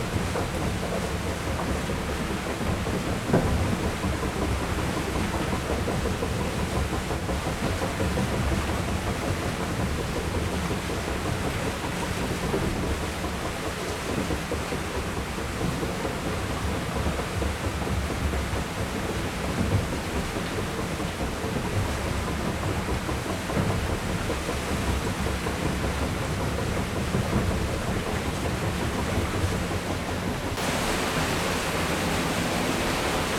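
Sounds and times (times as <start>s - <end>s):
wooden water wheel turning: 0.0s - 33.3s
water spilling from a water wheel: 30.6s - 33.3s.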